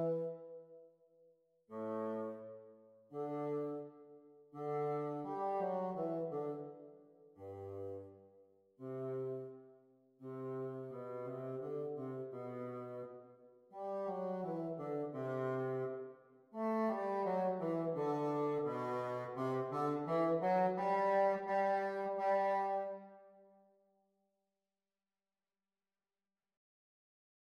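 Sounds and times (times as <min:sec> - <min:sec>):
bassoon duet: 0:00.0 - 0:00.4, 0:01.7 - 0:02.5, 0:03.1 - 0:03.9, 0:04.6 - 0:06.8, 0:07.4 - 0:08.1, 0:08.8 - 0:09.5, 0:10.2 - 0:13.1, 0:13.8 - 0:16.0, 0:16.6 - 0:23.2.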